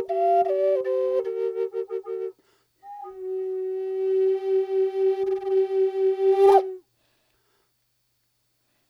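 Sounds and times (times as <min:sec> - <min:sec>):
G minor drone on a rosewood flute: 0:00.0 - 0:06.8.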